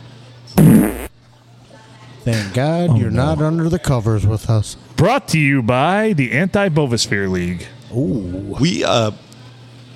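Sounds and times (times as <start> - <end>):
speech: 0.6 - 1.1, 2.2 - 9.2
fart: 0.6 - 1.2.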